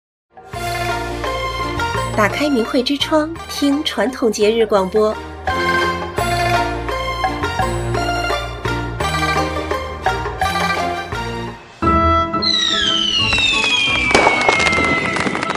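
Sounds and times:
bright melodic music: 0.4s - 15.5s
speech: 2.2s - 5.3s
firework whistling shriek: 12.2s - 15.5s.

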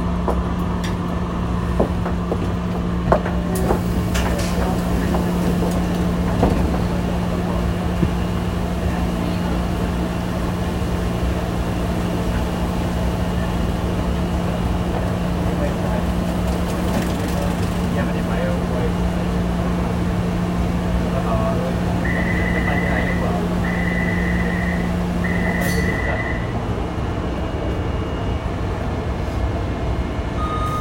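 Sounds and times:
Taipei metro train rumbling: 0.0s - 30.8s
short series of beeps: 22.0s - 26.6s, 30.4s - 30.8s.

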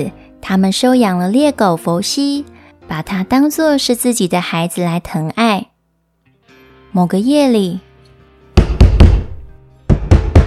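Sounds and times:
speech: 0.0s - 5.7s, 6.9s - 7.9s
urgent loud knocking on a door: 8.6s - 10.4s.

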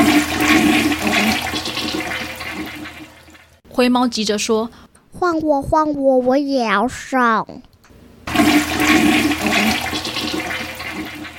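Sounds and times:
toilet flushing: 0.0s - 3.6s, 8.3s - 11.3s
speech: 3.8s - 7.7s.

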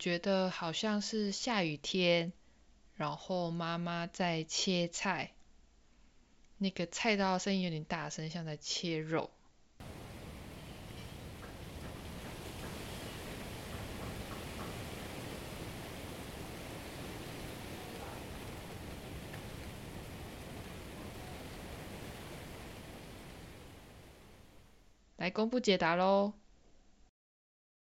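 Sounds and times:
speech: 0.0s - 2.4s, 3.0s - 5.4s, 6.6s - 9.4s, 25.2s - 26.4s
rice paddy field ambience in Tainan in November: 9.8s - 24.6s.

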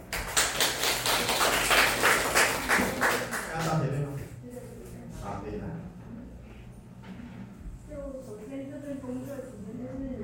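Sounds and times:
small group clapping: 0.0s - 4.2s.

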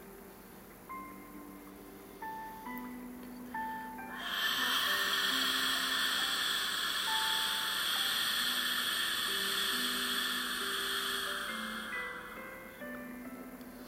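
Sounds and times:
soft sustained musical tones: 0.0s - 13.8s
ujjayi throat breathing inhale: 3.5s - 13.8s.

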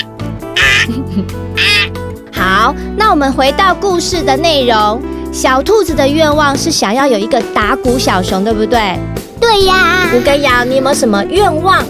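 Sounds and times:
child imitating a crow's caw: 0.0s - 1.0s, 1.6s - 2.0s
speech: 0.8s - 11.8s.

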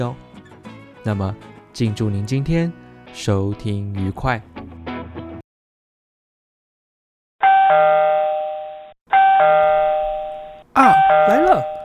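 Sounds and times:
speech: 0.0s - 0.2s, 1.0s - 4.5s
electric doorbell chiming two-tone ding-dong: 7.4s - 11.8s.

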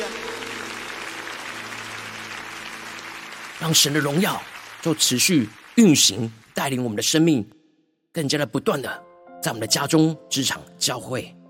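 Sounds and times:
hands clapping: 0.0s - 7.3s
speech: 3.6s - 7.6s, 8.2s - 11.4s.

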